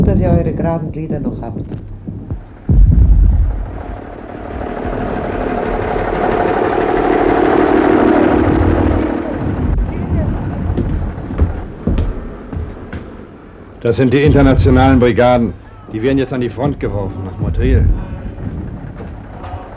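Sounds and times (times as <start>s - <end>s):
speech: 0.1s - 1.9s, 13.8s - 18.1s
cannon fire rumbling: 2.3s - 12.5s, 14.2s - 15.6s, 16.2s - 19.7s.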